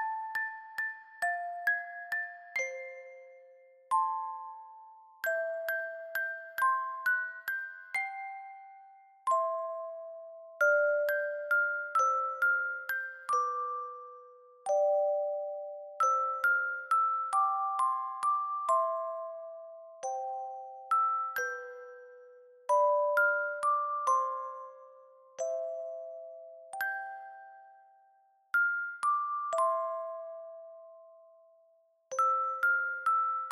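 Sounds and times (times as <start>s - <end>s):
fast lullaby background music with reverb: 0.0s - 33.5s.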